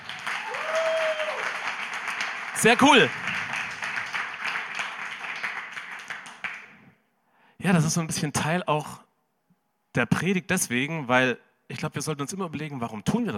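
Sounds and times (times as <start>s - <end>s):
audience applause: 0.0s - 6.8s
speech: 2.6s - 3.3s, 7.7s - 9.0s, 10.0s - 13.3s.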